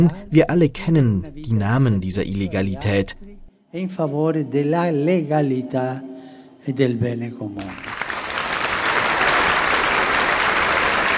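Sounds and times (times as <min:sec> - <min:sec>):
speech: 0:00.0 - 0:08.0
large crowd applause: 0:07.6 - 0:11.1.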